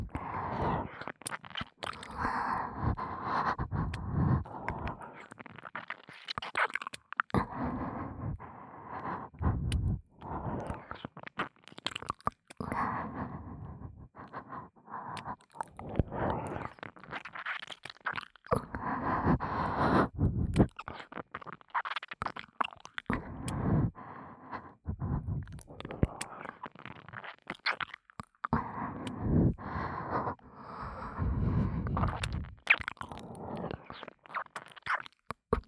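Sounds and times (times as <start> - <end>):
heavy breathing: 0.0 - 1.1, 2.0 - 5.2, 7.4 - 11.1, 12.6 - 16.7, 18.5 - 20.7, 23.1 - 26.5, 28.5 - 34.0
ear licking: 0.0 - 8.4, 9.0 - 14.4, 15.1 - 23.9, 24.5 - 35.6.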